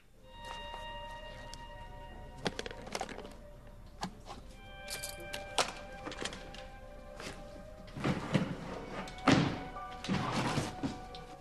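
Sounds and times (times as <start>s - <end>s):
stationery being rummaged: 0.3s - 11.4s
drawer opening: 5.0s - 11.4s.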